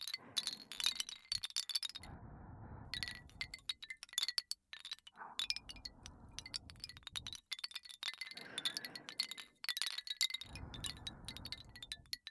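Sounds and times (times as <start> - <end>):
person breathing: 0.0 - 1.4, 2.0 - 3.8, 5.1 - 7.5, 8.2 - 9.6, 10.4 - 12.2
wooden wind chime: 0.0 - 2.1, 2.9 - 12.3.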